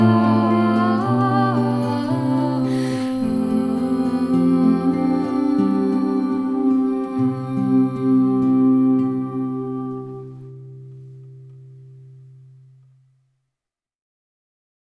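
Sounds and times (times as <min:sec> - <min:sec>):
children's song: 0:00.0 - 0:10.6.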